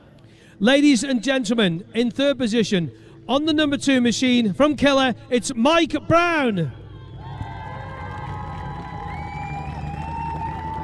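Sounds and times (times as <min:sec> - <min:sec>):
speech: 0:00.6 - 0:06.8
crowd applause at podium: 0:06.9 - 0:10.8.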